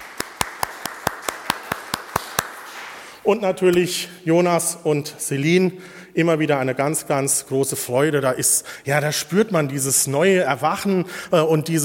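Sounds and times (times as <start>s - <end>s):
audience applause: 0.0s - 3.0s
speech: 3.2s - 11.8s.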